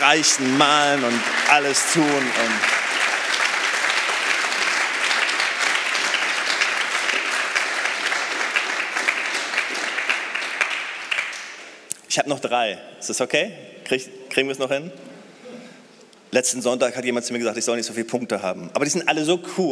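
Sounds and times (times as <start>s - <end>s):
audience clapping: 0.0s - 11.9s
speech: 0.1s - 2.8s, 12.2s - 15.1s, 16.3s - 19.7s.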